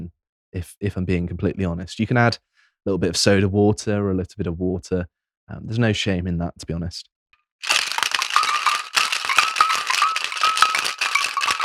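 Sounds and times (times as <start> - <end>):
speech: 0.5 - 7.7
cocktail being shaken in a shaker: 7.6 - 11.6.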